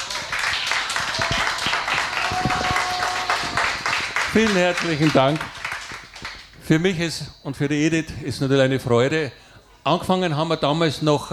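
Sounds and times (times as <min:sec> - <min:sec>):
crowd applause: 0:00.0 - 0:06.6
speech: 0:04.4 - 0:05.6, 0:06.7 - 0:11.3.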